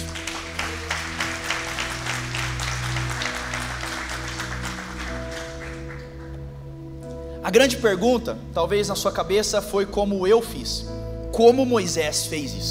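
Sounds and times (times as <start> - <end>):
audience applause: 0.0 - 6.4
speech: 7.5 - 12.7.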